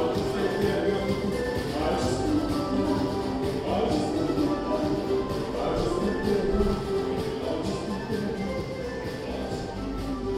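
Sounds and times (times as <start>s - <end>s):
man singing: 0.0s - 10.2s.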